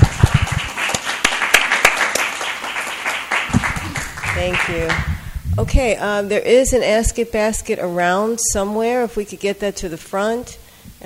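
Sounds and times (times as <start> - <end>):
room of people applauding: 0.0 - 5.4
speech: 4.4 - 11.0.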